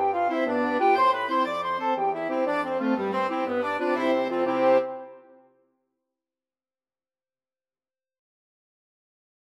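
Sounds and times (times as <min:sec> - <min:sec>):
Irish jig medley by six-player mixed ensemble: 0:00.0 - 0:05.2.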